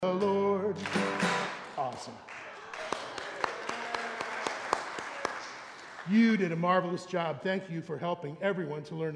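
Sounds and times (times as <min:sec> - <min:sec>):
audience clapping after a song: 0:00.8 - 0:06.7
speech: 0:06.1 - 0:09.1.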